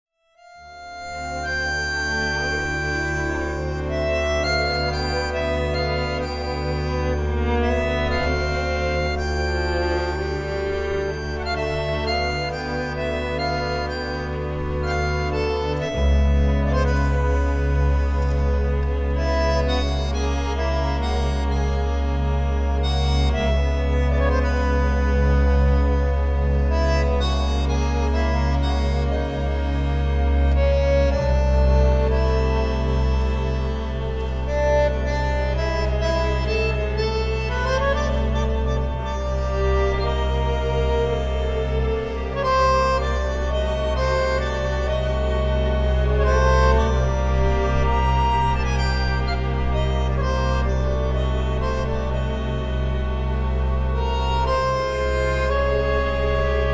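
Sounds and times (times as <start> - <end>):
tango music: 0.4 - 56.7.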